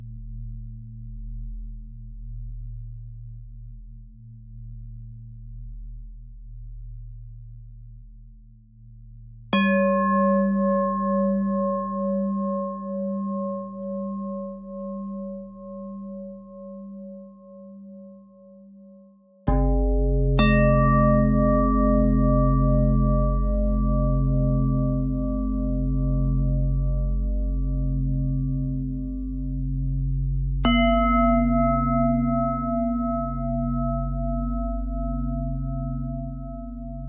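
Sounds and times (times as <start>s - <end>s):
bending bell tone: 9.6s - 18.6s, 19.5s - 37.0s.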